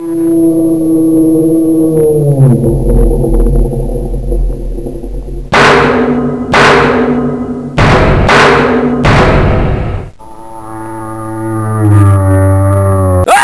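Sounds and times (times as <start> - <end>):
ambience: 0.0 - 13.3.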